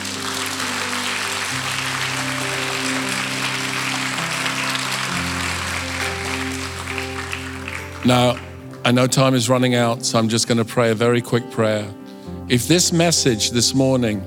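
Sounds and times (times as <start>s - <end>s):
audience clapping: 0.0s - 9.4s
speech: 8.0s - 14.2s.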